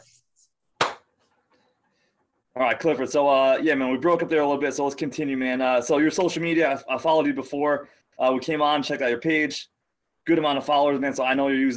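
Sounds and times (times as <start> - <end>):
single hand clap for sync: 0.8 - 1.1
speech: 2.6 - 11.7.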